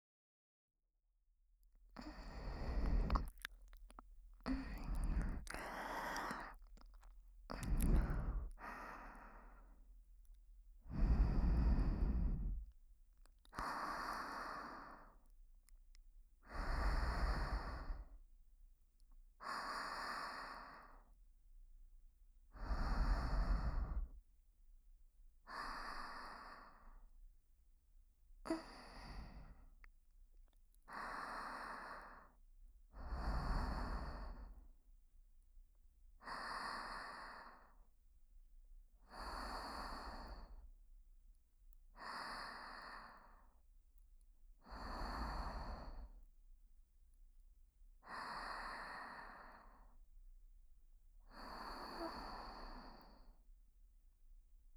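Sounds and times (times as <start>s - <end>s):
younger sister breathing in sleep: 2.0s - 3.8s, 4.4s - 6.8s, 7.5s - 9.8s, 10.8s - 12.7s, 13.6s - 15.2s, 16.5s - 18.1s, 19.4s - 21.0s, 22.6s - 24.2s, 25.5s - 27.0s, 28.5s - 29.7s, 30.9s - 32.4s, 33.0s - 34.6s, 36.2s - 37.8s, 39.1s - 40.6s, 42.0s - 43.5s, 44.6s - 46.2s, 48.0s - 50.0s, 51.3s - 53.4s.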